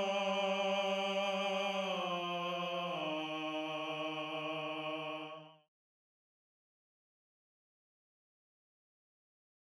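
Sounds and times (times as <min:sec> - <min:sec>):
tenor singing: 0:00.0 - 0:05.4.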